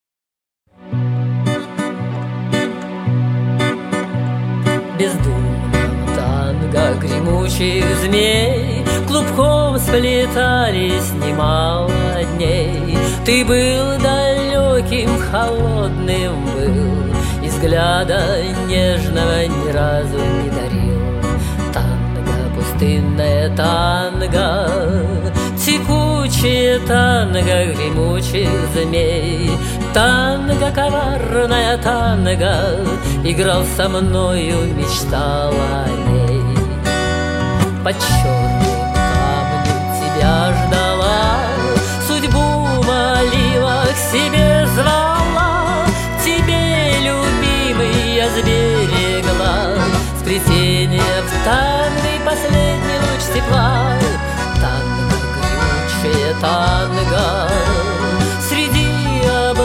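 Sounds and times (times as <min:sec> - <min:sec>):
tango music: 0:00.8 - 0:59.6.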